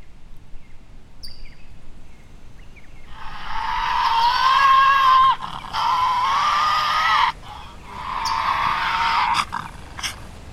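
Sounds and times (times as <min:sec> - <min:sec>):
Tasmanian devil crying: 0:03.1 - 0:10.2.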